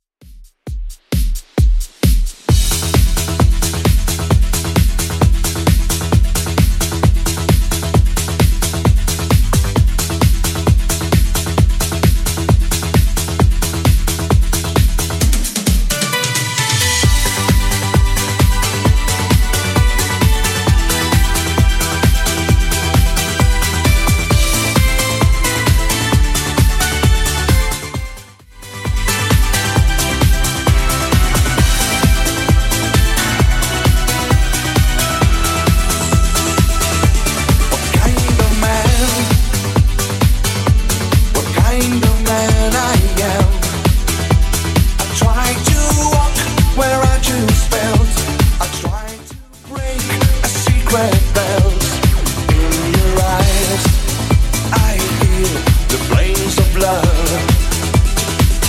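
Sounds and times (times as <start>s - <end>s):
80s style beat at 132 bpm: 0.1s - 58.6s.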